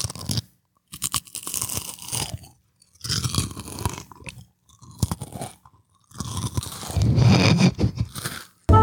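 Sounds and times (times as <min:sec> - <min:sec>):
crackers being eaten for ASMR: 0:00.0 - 0:08.7.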